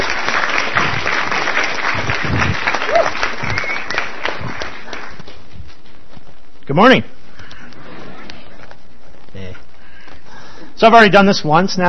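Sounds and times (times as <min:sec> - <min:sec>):
audience applause welcoming a speaker: 0:00.0 - 0:05.5
speech: 0:06.7 - 0:07.2, 0:10.8 - 0:11.8.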